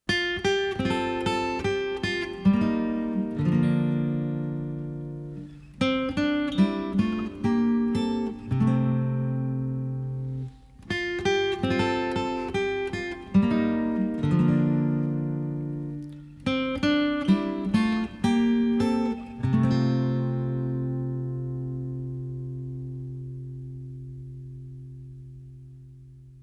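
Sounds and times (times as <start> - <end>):
guitar interlude: 0.0 - 26.4.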